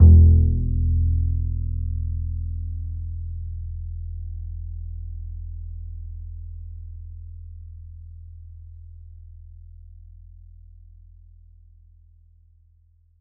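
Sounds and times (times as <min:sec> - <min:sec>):
E note on the E string of an upright bass: 0:00.0 - 0:10.1.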